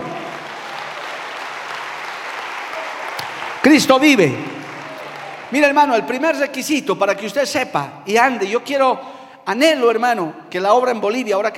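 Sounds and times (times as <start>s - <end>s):
audience applause: 0.0s - 6.1s
speech: 3.6s - 4.5s, 5.5s - 11.5s.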